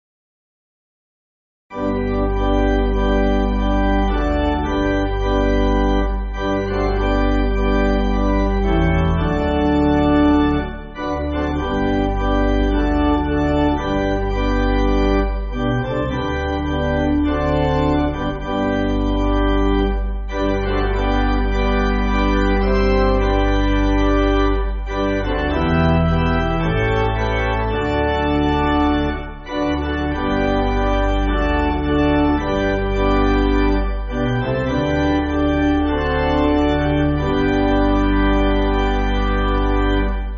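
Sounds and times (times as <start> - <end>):
pipe organ backing for churches: 1.7 - 40.3.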